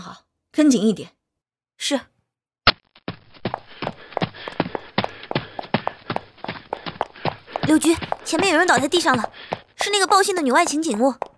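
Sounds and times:
speech: 0.1 - 1.2, 1.8 - 2.1, 7.8 - 11.3
footsteps of people walking toward an alley entrance: 3.0 - 11.3.

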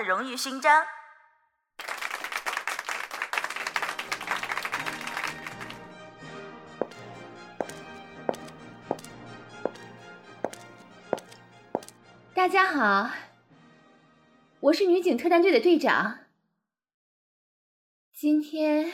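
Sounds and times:
speech: 0.0 - 1.0, 12.4 - 13.2, 14.6 - 16.2, 18.2 - 18.9
audience applause: 1.8 - 5.8.

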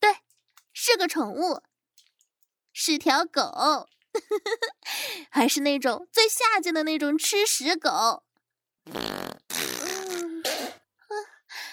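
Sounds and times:
speech: 0.9 - 1.7, 2.8 - 9.6
loud wet farting during a bowel movement: 8.8 - 10.9.

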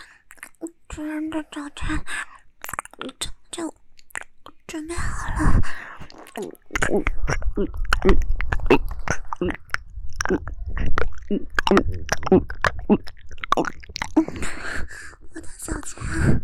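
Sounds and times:
speech: 1.0 - 2.3, 3.0 - 3.8, 4.7 - 5.7, 6.4 - 8.3, 9.4 - 9.6, 10.3 - 10.5, 11.3 - 13.1
person chewing while eating: 6.0 - 14.8.

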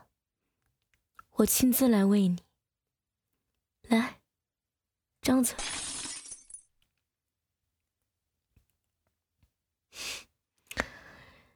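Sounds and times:
speech: 1.4 - 2.5, 3.9 - 4.2, 5.2 - 5.9
glass breaking: 5.6 - 6.6.

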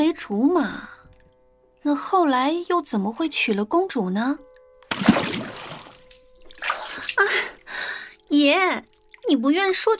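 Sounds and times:
speech: 0.0 - 1.0, 1.8 - 5.4, 8.3 - 9.9
water splashing as someone is dragged into it: 4.9 - 7.5.

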